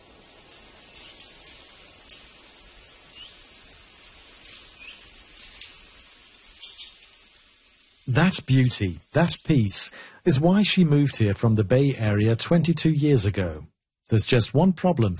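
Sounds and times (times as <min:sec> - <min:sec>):
chorus of many birds singing and chirping: 0:00.2 - 0:02.3, 0:03.1 - 0:05.8, 0:06.4 - 0:08.4
speech: 0:08.1 - 0:15.1.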